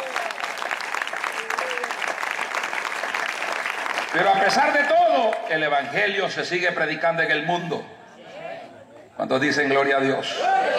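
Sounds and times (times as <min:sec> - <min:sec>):
audience applauding: 0:00.0 - 0:05.9
speech: 0:04.1 - 0:07.9, 0:09.2 - 0:10.7.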